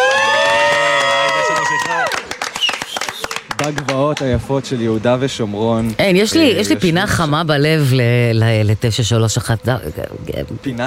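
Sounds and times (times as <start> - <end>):
crowd applauding and cheering: 0.0 - 4.4
speech: 3.7 - 10.8.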